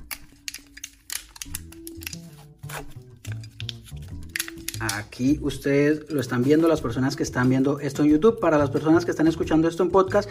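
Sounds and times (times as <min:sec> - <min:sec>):
tattoo needle cartridge package being opened: 0:00.0 - 0:05.2
speech: 0:02.7 - 0:03.0, 0:04.8 - 0:10.3.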